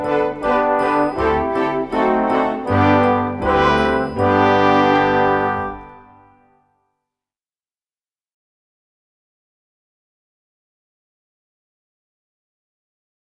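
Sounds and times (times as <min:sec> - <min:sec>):
recorder melody: 0:00.0 - 0:06.5.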